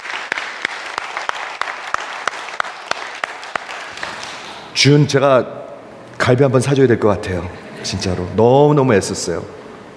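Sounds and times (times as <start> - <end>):
audience applauding: 0.0 - 4.7
speech: 4.8 - 5.6, 6.3 - 9.6.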